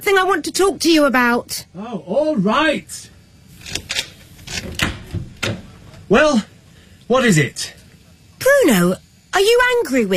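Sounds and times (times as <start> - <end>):
speech: 0.0 - 3.1, 6.1 - 6.5, 7.1 - 7.8, 8.4 - 10.1
door being opened with clicks and clunks: 3.7 - 6.0.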